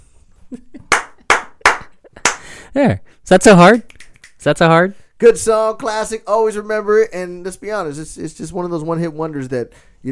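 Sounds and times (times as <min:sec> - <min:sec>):
hand slap: 0:00.9 - 0:02.4
speech: 0:02.8 - 0:10.1.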